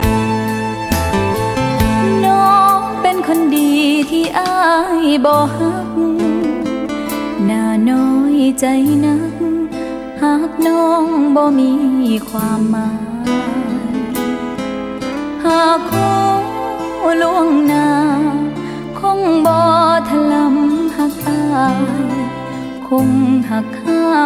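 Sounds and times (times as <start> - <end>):
Thai music: 0.0 - 24.2.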